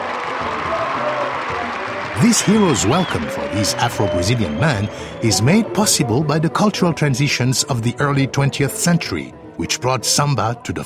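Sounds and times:
huge applause from a concert audience: 0.0 - 5.6
speech: 2.2 - 10.8.

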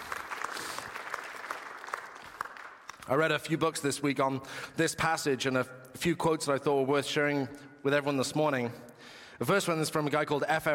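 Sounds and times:
audience applause: 0.0 - 3.1
speech: 3.1 - 10.7.

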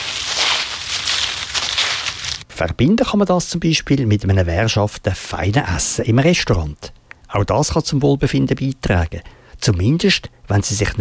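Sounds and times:
dry leaves rustling underfoot in a forest: 0.0 - 2.5
speech: 2.6 - 11.0.

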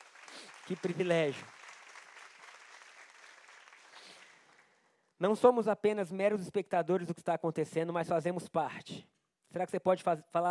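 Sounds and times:
audience applauding: 0.0 - 4.9
speech: 0.7 - 1.6, 5.2 - 10.4.

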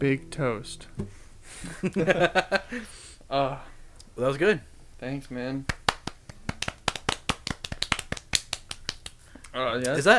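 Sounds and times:
speech: 0.0 - 5.8, 9.5 - 10.1
laughter: 1.6 - 2.8
person clapping: 5.7 - 10.0.

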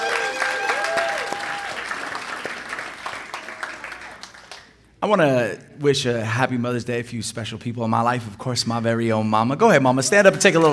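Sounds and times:
audience applause: 0.0 - 4.7
speech: 5.0 - 10.7.

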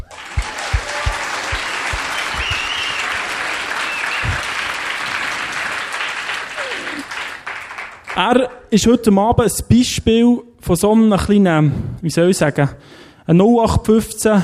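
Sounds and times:
audience applause: 0.0 - 8.4
speech: 8.2 - 14.4.

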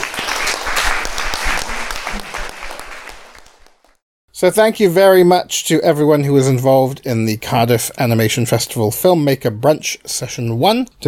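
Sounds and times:
audience applause: 0.0 - 4.0
speech: 4.4 - 11.0.

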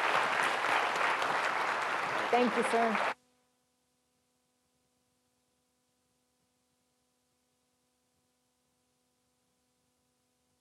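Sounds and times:
audience applause: 0.0 - 3.2
speech: 2.3 - 3.1.

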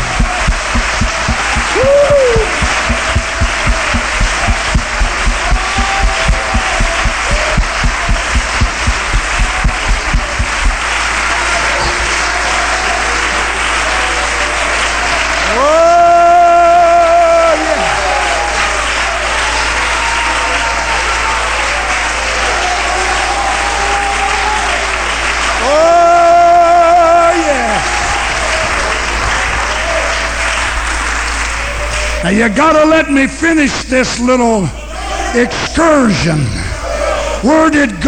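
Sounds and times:
audience clapping hands: 0.0 - 35.0
speech: 32.4 - 36.6, 37.4 - 38.0.

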